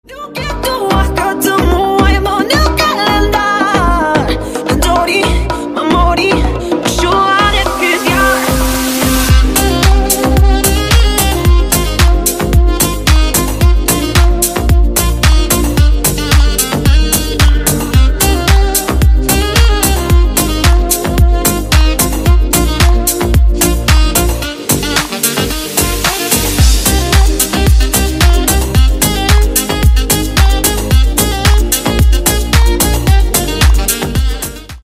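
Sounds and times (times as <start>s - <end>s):
saxophone remix: 0.0s - 34.8s.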